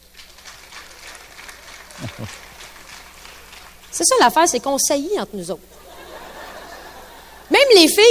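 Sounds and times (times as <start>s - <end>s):
audience applause: 0.0s - 3.9s
laughter: 1.8s - 2.5s, 5.8s - 7.5s
speech: 2.0s - 2.5s, 4.0s - 5.8s, 7.7s - 8.1s.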